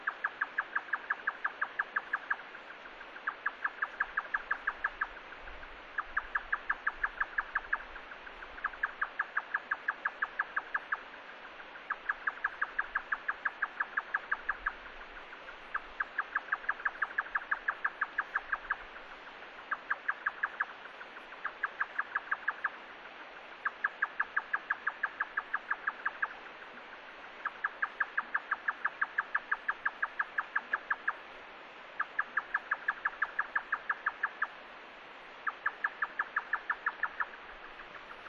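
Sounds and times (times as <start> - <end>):
yotaka nightjar in Nigata: 0.0 - 34.6, 35.2 - 38.2.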